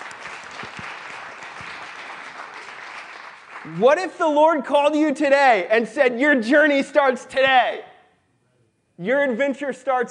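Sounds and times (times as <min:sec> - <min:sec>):
audience applause: 0:00.0 - 0:03.8
speech: 0:03.6 - 0:07.9, 0:09.0 - 0:10.0.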